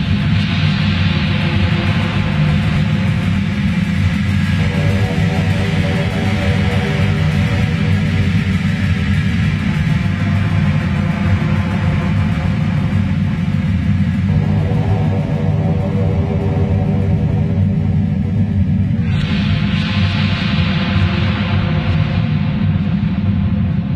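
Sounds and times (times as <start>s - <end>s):
dark soundscape: 0.0s - 23.9s.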